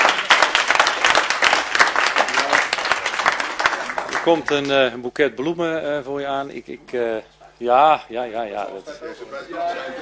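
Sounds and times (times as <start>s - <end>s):
room full of people applauding: 0.0s - 4.8s
speech: 4.2s - 9.9s
laughter: 8.8s - 9.9s.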